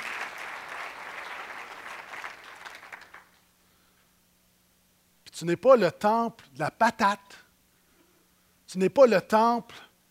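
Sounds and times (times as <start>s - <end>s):
audience clapping: 0.0s - 3.4s
speech: 5.4s - 7.4s, 8.7s - 9.9s.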